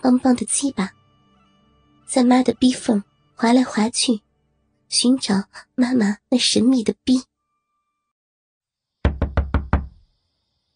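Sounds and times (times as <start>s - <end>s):
speech: 0.0s - 1.0s, 2.1s - 4.2s, 4.9s - 7.3s
knocking on a door: 9.0s - 10.0s.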